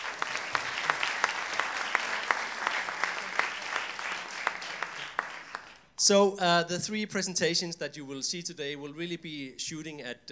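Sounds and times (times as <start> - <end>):
audience applause welcoming a panel at a children's documentary session: 0.0 - 5.9
sharp distinct claps: 0.0 - 5.9
speech: 6.0 - 10.3.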